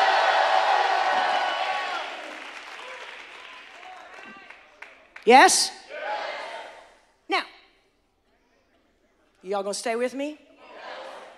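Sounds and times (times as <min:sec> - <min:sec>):
audience shouting and cheering: 0:00.0 - 0:04.6, 0:05.9 - 0:06.9
people clapping: 0:00.0 - 0:05.5
speech: 0:05.2 - 0:05.8, 0:09.5 - 0:10.5.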